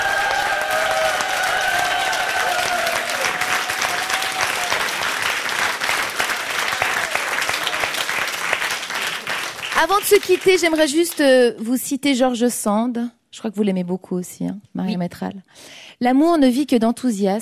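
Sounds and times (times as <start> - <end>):
audience applause: 0.0 - 11.2
speech: 9.8 - 17.3.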